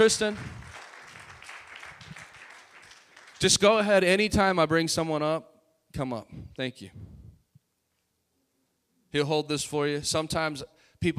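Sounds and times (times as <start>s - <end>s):
speech: 0.0s - 0.6s, 3.4s - 7.1s, 9.1s - 11.1s
round of applause: 0.0s - 3.8s.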